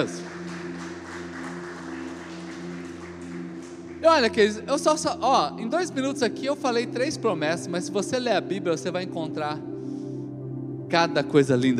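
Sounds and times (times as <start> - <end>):
speech: 0.0 - 0.2, 4.0 - 9.7, 10.9 - 11.7
crowd clapping: 0.0 - 5.2.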